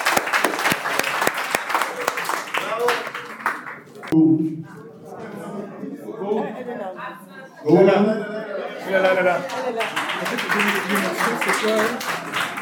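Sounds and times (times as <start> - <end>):
audience applause and clapping: 0.0 - 4.2, 8.9 - 12.6
speech: 4.2 - 4.8, 7.1 - 8.3, 8.9 - 12.3
laughter: 6.1 - 12.6.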